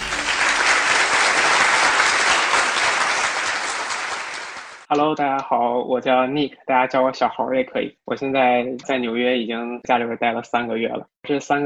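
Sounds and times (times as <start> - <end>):
audience clapping to welcome a guest: 0.0 - 4.9
speech: 4.9 - 11.6.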